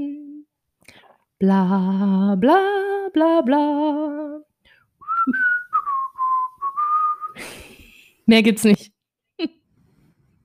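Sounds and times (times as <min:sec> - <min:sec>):
speech: 0:01.4 - 0:04.4, 0:05.2 - 0:05.5, 0:08.3 - 0:09.6
person whistling a cartoon theme tune: 0:05.0 - 0:07.5.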